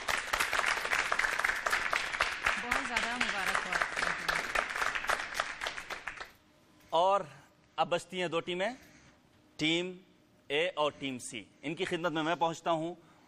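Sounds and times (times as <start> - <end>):
audience applause: 0.0 - 6.4
speech: 7.0 - 8.9, 9.6 - 13.1.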